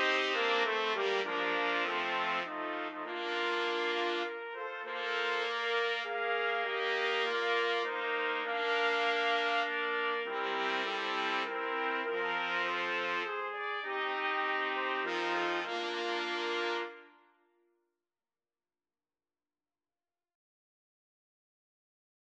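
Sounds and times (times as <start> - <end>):
trumpet nocturne: 0.0 - 17.3.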